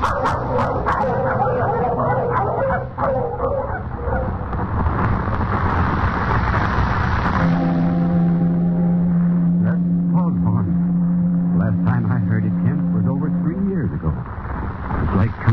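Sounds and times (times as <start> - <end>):
pack of sled dogs barking and yipping: 0.0 - 4.4
low rumble: 0.0 - 15.5.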